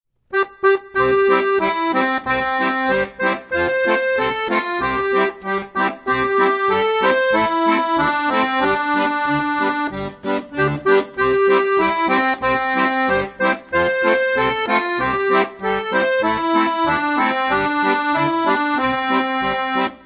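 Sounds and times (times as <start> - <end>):
accordion bass accompaniment in eighth notes: 0.3 - 20.0.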